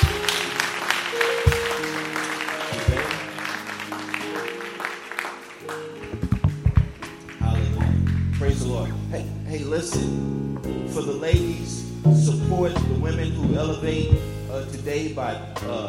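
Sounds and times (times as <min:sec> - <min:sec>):
audience applause: 0:00.0 - 0:08.6
speech: 0:09.8 - 0:15.8.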